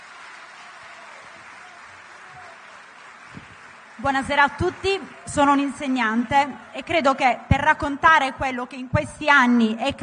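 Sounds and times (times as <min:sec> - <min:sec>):
audience applause: 0:00.0 - 0:06.7
speech: 0:04.0 - 0:10.0.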